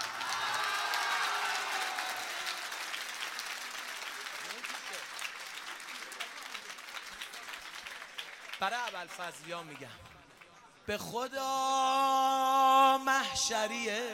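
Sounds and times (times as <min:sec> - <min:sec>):
audience at an evening gathering clapping: 0:00.0 - 0:10.7
speech: 0:08.6 - 0:10.1, 0:10.9 - 0:14.1.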